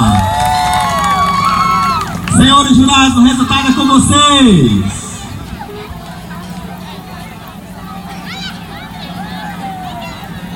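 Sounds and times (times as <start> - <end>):
audience clapping and cheering: 0.0 - 3.3
speech: 2.7 - 5.0.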